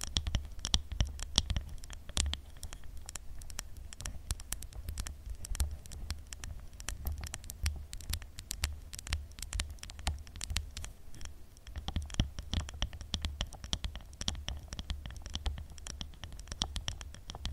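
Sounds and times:
fast irregular tapping: 0:00.0 - 0:10.9, 0:11.7 - 0:17.5.

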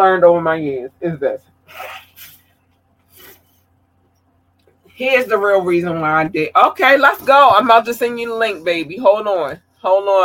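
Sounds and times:
speech: 0:00.0 - 0:02.0, 0:05.0 - 0:10.2
person blowing nose: 0:03.1 - 0:03.6.

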